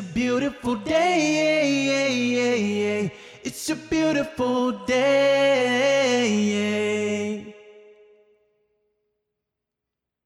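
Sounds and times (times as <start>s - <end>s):
a cappella singing: 0.0s - 8.1s.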